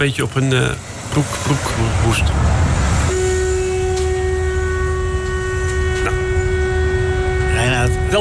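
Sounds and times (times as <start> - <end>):
speech: 0.0 - 2.9, 7.9 - 8.1
novelty horn: 3.1 - 8.1.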